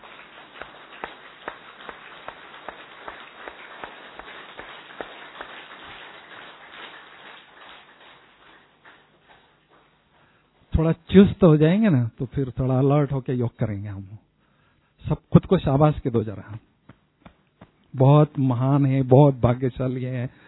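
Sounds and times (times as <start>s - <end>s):
group clapping hands rhythmically: 0.0s - 10.0s, 16.8s - 17.9s
speech: 10.8s - 14.2s, 15.1s - 16.7s, 18.0s - 20.4s.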